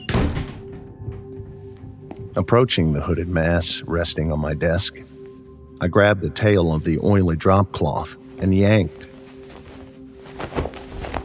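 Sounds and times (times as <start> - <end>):
door slamming shut: 0.0 - 0.9
speech: 2.4 - 5.2, 5.8 - 9.1.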